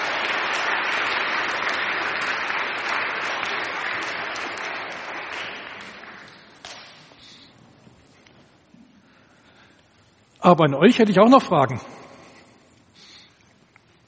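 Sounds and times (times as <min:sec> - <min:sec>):
audience applause: 0:00.0 - 0:06.8
speech: 0:10.4 - 0:11.9.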